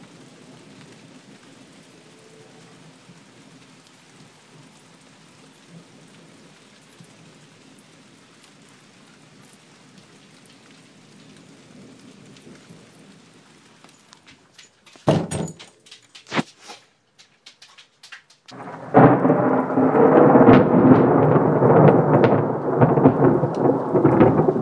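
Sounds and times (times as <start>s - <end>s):
rain: 0.0s - 24.6s
thunder: 18.5s - 24.6s.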